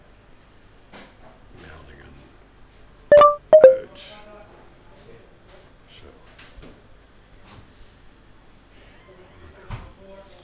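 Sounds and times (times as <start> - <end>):
phone notification tones: 3.1 - 3.8.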